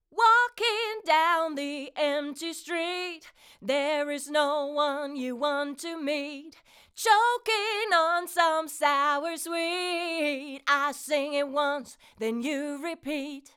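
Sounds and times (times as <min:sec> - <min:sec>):
vocals without compression: 0:00.0 - 0:13.5.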